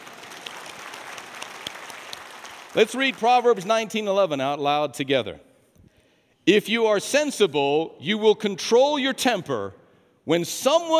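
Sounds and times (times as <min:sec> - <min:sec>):
audience clapping hands: 0:00.0 - 0:03.7
speech: 0:02.8 - 0:05.5, 0:06.4 - 0:10.9.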